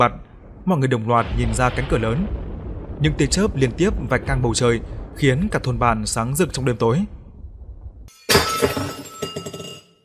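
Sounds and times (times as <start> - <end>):
speech: 0.0 - 2.4, 3.0 - 7.2, 8.3 - 9.0
bowl falling and shattering: 8.1 - 10.0.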